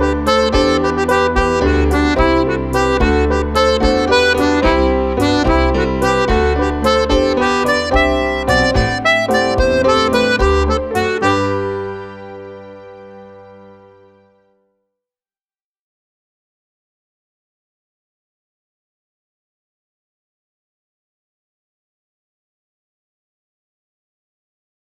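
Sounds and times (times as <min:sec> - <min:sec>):
treble jig tune: 0:00.0 - 0:13.7.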